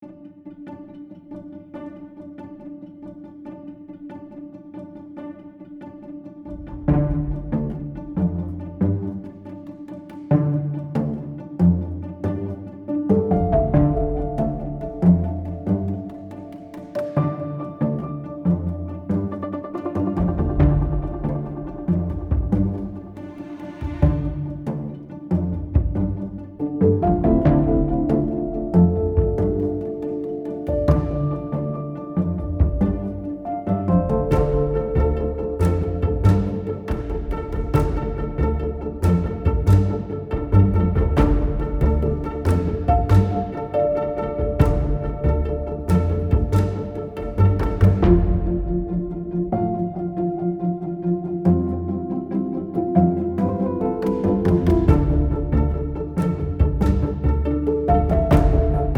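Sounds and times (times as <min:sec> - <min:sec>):
serious music: 0:00.4 - 0:58.9.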